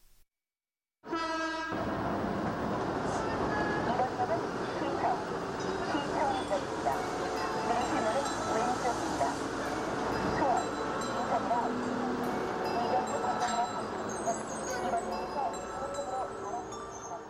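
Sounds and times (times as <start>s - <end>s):
subway train: 1.1s - 17.2s.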